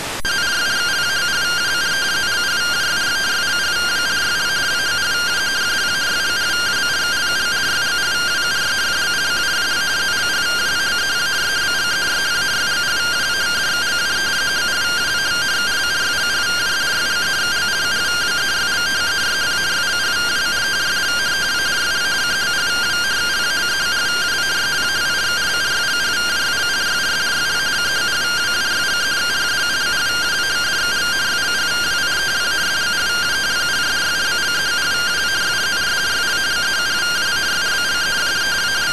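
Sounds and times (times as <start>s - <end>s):
received RTTY radioteletype signal: 0.2s - 38.9s.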